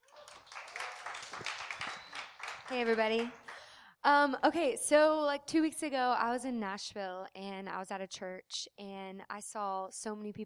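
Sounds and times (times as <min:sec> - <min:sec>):
audience applause welcoming a speaker at a church gathering: 0:00.0 - 0:03.7
speech: 0:02.7 - 0:03.4, 0:04.0 - 0:10.4.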